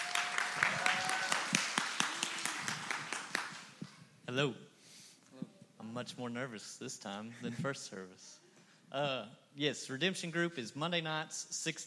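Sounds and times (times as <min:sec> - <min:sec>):
audience round of applause: 0:00.0 - 0:03.8
speech: 0:04.3 - 0:04.7, 0:05.8 - 0:11.8.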